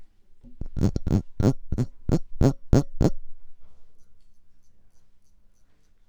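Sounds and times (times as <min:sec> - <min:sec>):
trombone: 0:00.5 - 0:03.2.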